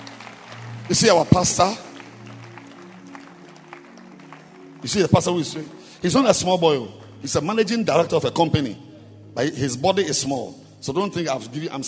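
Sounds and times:
audience clapping hands: 0.0 - 8.1
speech: 0.9 - 1.9, 4.8 - 11.8.

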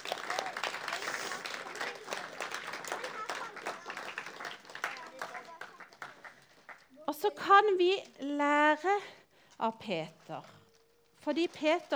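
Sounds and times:
audience applause for the actors: 0.0 - 7.0
speech: 7.2 - 10.6, 11.2 - 11.9.

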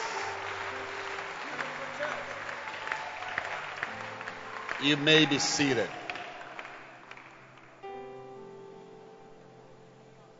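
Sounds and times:
audience clapping hands: 0.0 - 7.8
speech: 4.8 - 6.0.

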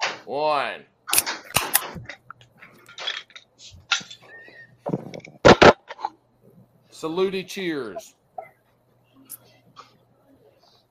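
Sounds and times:
speech: 0.3 - 2.2, 7.0 - 8.2
drink cans cracking open: 1.1 - 4.2.

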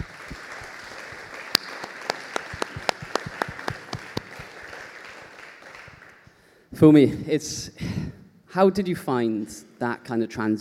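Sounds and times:
audience applause: 0.0 - 6.4
speech: 6.8 - 7.9, 8.5 - 10.5.

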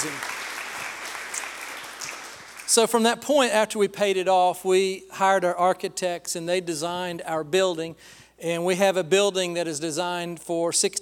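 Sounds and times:
audience applause: 0.0 - 2.7
speech: 2.7 - 11.0.

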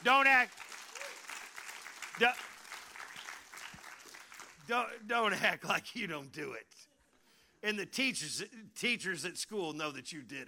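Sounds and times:
speech: 0.0 - 0.6, 2.2 - 2.5, 4.7 - 6.9, 7.6 - 10.4
audience applause: 0.0 - 4.7.

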